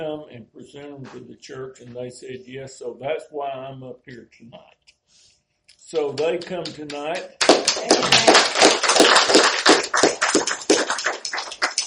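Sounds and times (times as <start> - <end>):
speech: 0.0 - 5.2, 5.9 - 10.1
audience clapping: 5.9 - 11.8.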